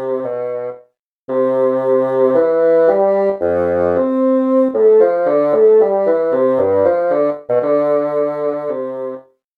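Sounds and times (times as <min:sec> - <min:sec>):
bassoon playing slowly: 0:00.0 - 0:09.4.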